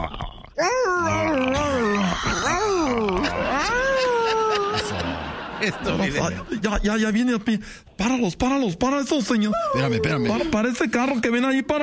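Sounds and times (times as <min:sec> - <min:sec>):
person imitating a dog whimpering in pain: 0:00.0 - 0:05.0, 0:09.5 - 0:10.5
noise: 0:00.0 - 0:11.8
speech: 0:00.6 - 0:00.8, 0:05.6 - 0:11.8
laughter: 0:01.7 - 0:06.8.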